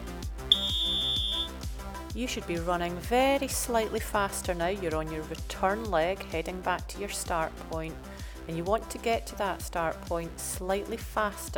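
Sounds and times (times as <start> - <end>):
whistle signal for running pace: 0.5 - 1.6
speech: 2.2 - 11.5.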